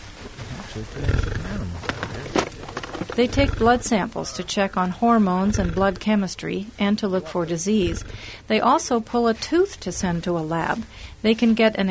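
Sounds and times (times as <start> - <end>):
sedated wild animal snoring: 0.5 - 2.2, 3.2 - 4.5, 5.2 - 6.4, 7.2 - 8.5
speech: 0.8 - 1.9, 3.2 - 11.8.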